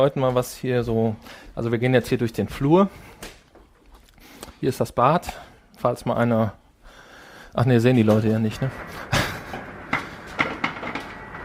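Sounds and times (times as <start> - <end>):
speech: 0.0 - 3.3, 4.6 - 6.6, 7.6 - 9.1
ice cube machine running: 8.5 - 11.4.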